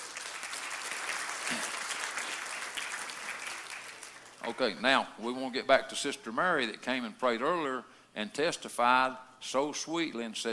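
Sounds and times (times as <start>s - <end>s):
audience applause: 0.0s - 4.4s
speech: 4.4s - 10.5s.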